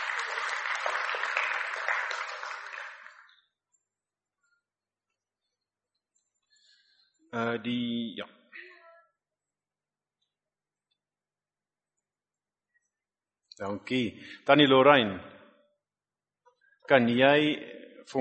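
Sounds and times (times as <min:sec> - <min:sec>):
audience clapping: 0:00.0 - 0:03.4
speech: 0:07.4 - 0:08.4, 0:13.6 - 0:15.3, 0:16.9 - 0:18.1.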